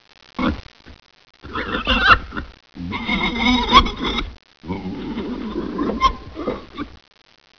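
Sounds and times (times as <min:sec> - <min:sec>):
pigs: 0:01.4 - 0:06.9.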